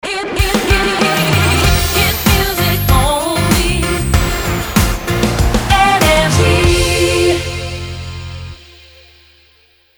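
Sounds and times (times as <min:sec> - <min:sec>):
shotgun jingle: 0:01.0 - 0:08.8.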